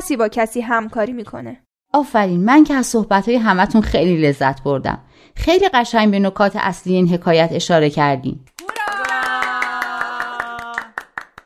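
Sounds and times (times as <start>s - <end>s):
speech: 0.1s - 8.6s
group clapping hands: 8.5s - 11.4s.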